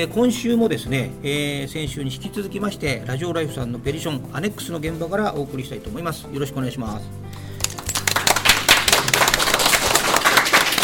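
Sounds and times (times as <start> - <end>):
speech: 0.0 - 7.3
audience applause: 7.6 - 10.8.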